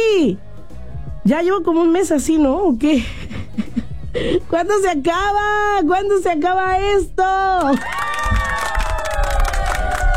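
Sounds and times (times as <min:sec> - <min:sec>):
speech: 0:00.2 - 0:00.5, 0:01.2 - 0:03.3, 0:04.2 - 0:08.1
clapping: 0:07.6 - 0:10.1
crowd cheering: 0:07.7 - 0:10.1.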